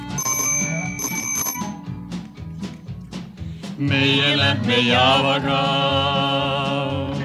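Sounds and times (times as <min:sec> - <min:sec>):
bicycle bell ringing: 0:00.0 - 0:01.8
speech: 0:03.8 - 0:07.1.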